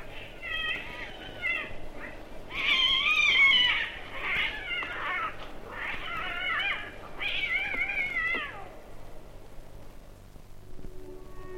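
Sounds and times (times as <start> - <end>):
cats yowling and fighting: 0.0 - 8.9.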